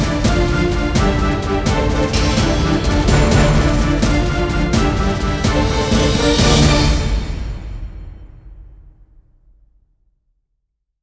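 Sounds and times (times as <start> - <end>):
dramatic logo intro music: 0.0 - 8.5.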